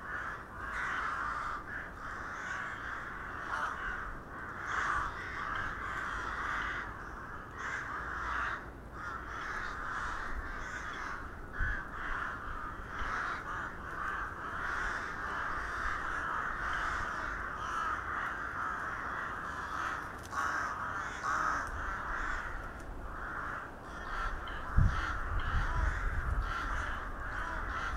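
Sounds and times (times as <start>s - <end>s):
flock of crows cawing: 0.0s - 27.9s.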